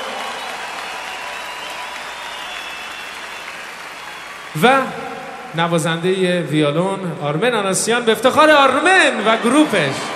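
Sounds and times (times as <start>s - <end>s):
audience applause at a live concert for the drummer: 0.0s - 5.6s
speech: 4.5s - 10.1s.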